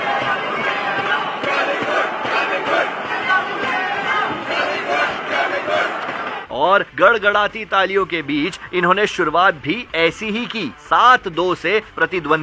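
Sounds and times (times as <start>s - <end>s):
Indian fans chanting in a stadium at a badminton match: 0.0s - 6.5s
speech: 6.6s - 12.4s.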